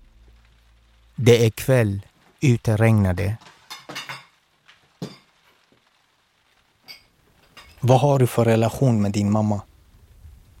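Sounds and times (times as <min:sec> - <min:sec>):
speech: 0:01.2 - 0:03.5, 0:07.8 - 0:09.7
ceramic dishes and metal cutlery being set out on a table: 0:03.4 - 0:04.4, 0:05.0 - 0:05.3, 0:06.8 - 0:07.8.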